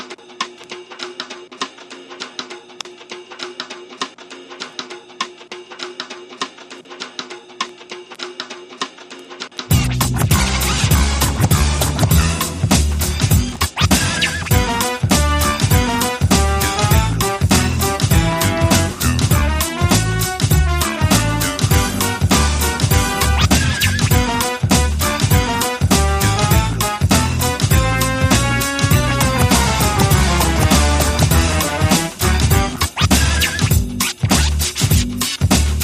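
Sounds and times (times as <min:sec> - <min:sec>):
hip hop music: 0:09.7 - 0:35.8.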